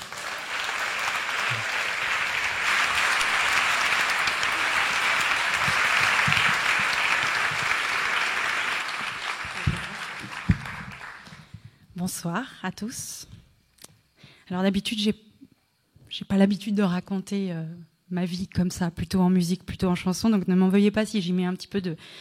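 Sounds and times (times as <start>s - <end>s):
audience applause: 0.0s - 11.5s
speech: 12.1s - 13.3s, 14.5s - 15.2s, 16.2s - 22.2s.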